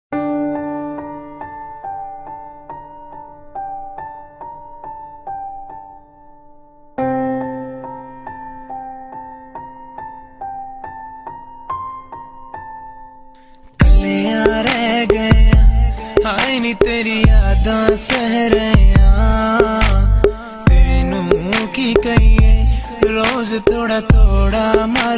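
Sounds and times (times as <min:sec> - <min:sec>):
sad music: 0:13.4 - 0:25.1.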